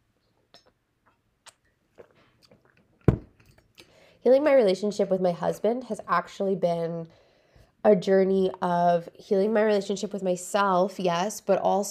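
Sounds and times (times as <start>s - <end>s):
person drinking water: 0.4s - 4.0s
speech: 4.2s - 7.2s, 7.8s - 11.8s.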